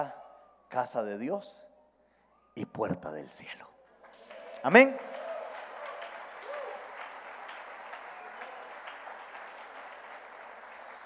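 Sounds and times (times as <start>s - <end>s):
speech: 0.0s - 1.6s, 2.6s - 3.7s, 4.6s - 5.2s
large crowd applause: 4.0s - 11.0s.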